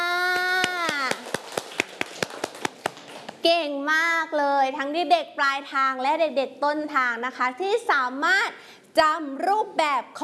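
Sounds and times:
children clapping hands: 0.2 - 3.4
speech: 3.4 - 10.2.

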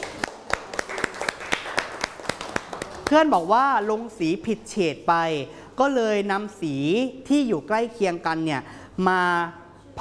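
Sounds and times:
classroom of students clapping for a classmate during an art lesson: 0.0 - 3.2
speech: 3.1 - 9.9.

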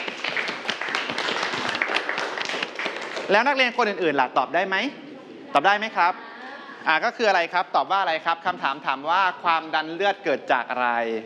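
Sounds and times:
students clapping for a classmate: 0.0 - 3.6
speech: 3.3 - 6.2, 6.8 - 11.2.

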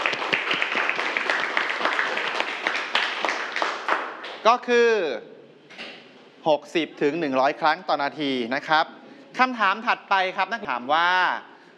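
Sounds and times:
class of students clapping: 0.0 - 4.5
speech: 4.4 - 5.3, 6.4 - 11.5.

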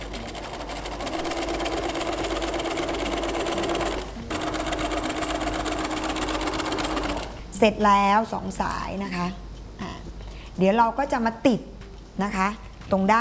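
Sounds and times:
sewing machine stitching folded pressed fabric: 0.0 - 7.4
speech: 7.6 - 9.4, 10.6 - 13.1.

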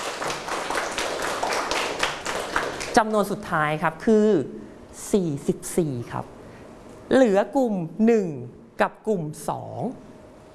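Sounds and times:
classmates clapping in a mathematics lesson: 0.0 - 3.1
speech: 3.0 - 6.4, 7.1 - 10.1.

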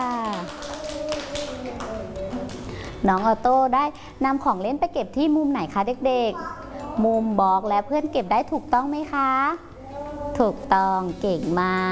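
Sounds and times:
young voices sustaining tones: 0.0 - 3.0, 9.7 - 10.9
children clapping for a classmate in class: 0.0 - 3.3
speech: 3.0 - 9.7, 10.4 - 11.9.

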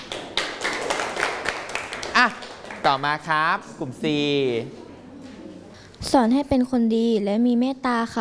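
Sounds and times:
students clapping for classmates in class: 0.0 - 3.1
speech: 2.2 - 4.8, 6.0 - 8.1.

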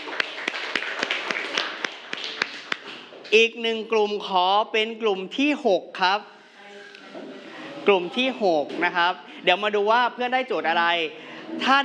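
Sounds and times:
students applauding: 0.0 - 3.3
speech: 3.3 - 6.4, 7.9 - 11.8.

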